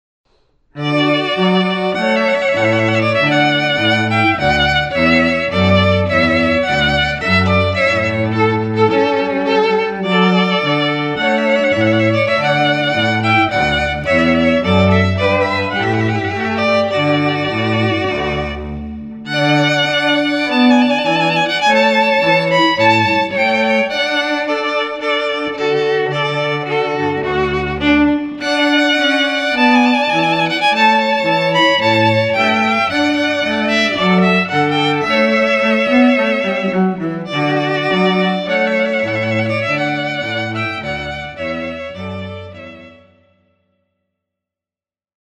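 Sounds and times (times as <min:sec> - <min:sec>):
trumpet piece: 0:00.8 - 0:43.1.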